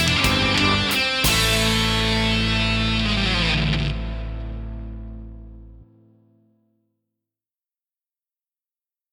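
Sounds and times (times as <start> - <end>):
rock backing track: 0.0 - 5.8.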